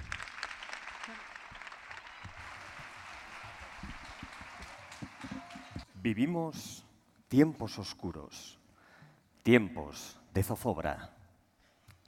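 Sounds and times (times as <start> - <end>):
audience applause: 0.0 - 5.9
speech: 6.0 - 8.6, 9.5 - 11.2.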